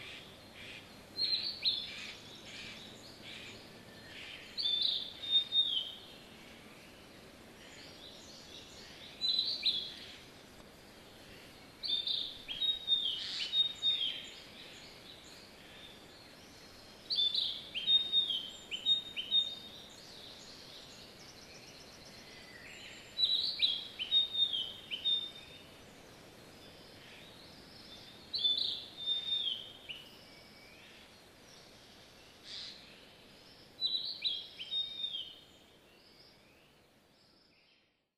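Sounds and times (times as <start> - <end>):
birds singing: 0.0 - 38.0.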